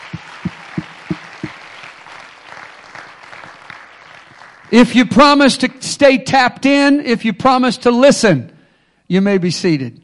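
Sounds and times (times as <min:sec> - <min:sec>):
audience clapping hands: 0:00.0 - 0:05.2
speech: 0:04.7 - 0:08.5, 0:09.1 - 0:10.0.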